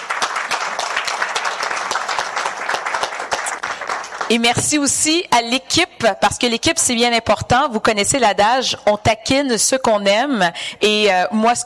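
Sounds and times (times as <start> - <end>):
audience applause: 0.0 - 4.4
speech: 4.3 - 11.6.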